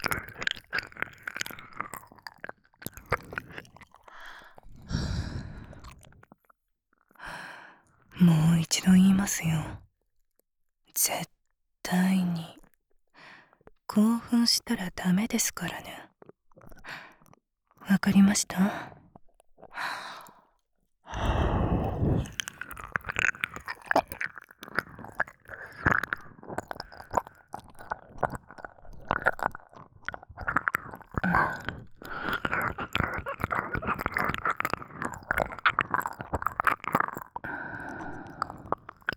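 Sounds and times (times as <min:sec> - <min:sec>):
ear licking: 0:00.0 - 0:06.2, 0:21.1 - 0:39.1
nurse speaking in a low cool voice: 0:08.2 - 0:09.9, 0:10.9 - 0:12.7, 0:13.9 - 0:16.2, 0:17.8 - 0:19.0, 0:31.2 - 0:31.8.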